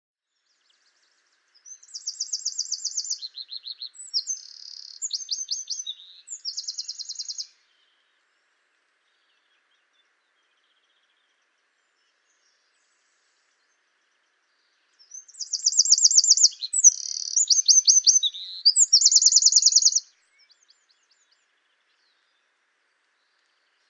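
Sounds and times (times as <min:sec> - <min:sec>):
Eurasian wren singing: 0:01.7 - 0:07.5, 0:15.0 - 0:20.0.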